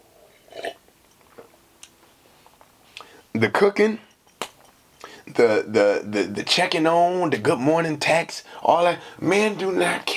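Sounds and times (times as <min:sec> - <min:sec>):
person drinking water: 0:00.2 - 0:01.6
speech: 0:03.4 - 0:04.1, 0:05.4 - 0:10.1.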